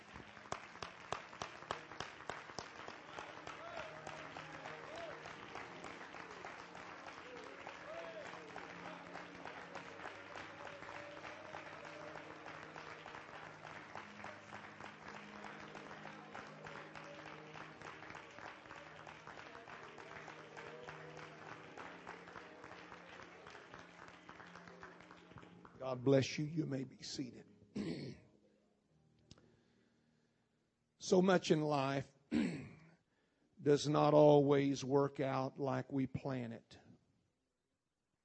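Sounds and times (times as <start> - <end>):
large audience clapping: 0.0 - 26.4
speech: 25.8 - 27.4, 31.1 - 32.5, 33.7 - 36.8.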